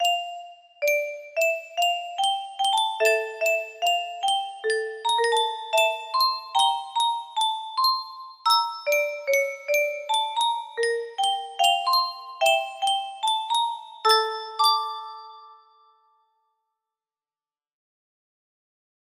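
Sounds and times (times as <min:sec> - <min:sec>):
music box melody: 0:00.0 - 0:16.2.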